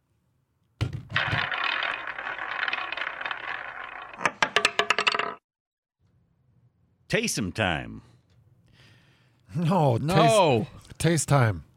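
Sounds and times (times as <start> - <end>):
roulette wheel spinning with a little ball: 1.1 - 5.4
speech: 7.1 - 8.1, 9.5 - 11.7.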